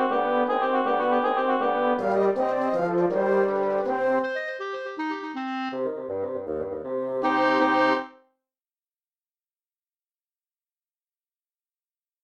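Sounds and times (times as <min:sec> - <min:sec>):
quintet playing a presto: 0:00.0 - 0:08.2.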